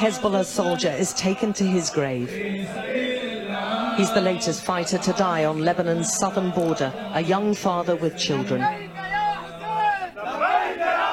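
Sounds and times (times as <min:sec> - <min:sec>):
speech: 0:00.0 - 0:03.3, 0:04.0 - 0:09.0
crowd shouting battle cries: 0:02.4 - 0:11.1.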